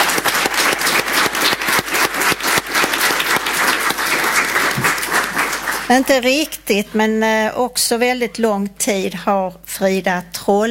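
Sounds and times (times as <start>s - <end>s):
room full of people applauding: 0.0s - 6.2s
speech: 5.9s - 10.6s.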